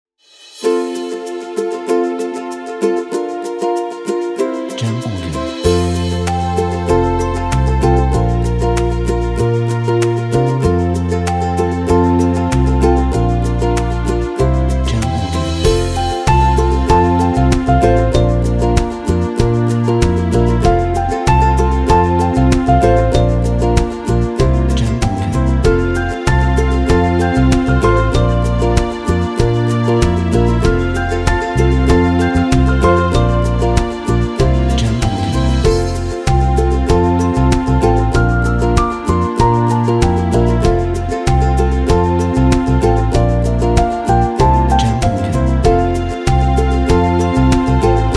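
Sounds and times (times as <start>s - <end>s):
happy folk music: 0.6s - 48.1s.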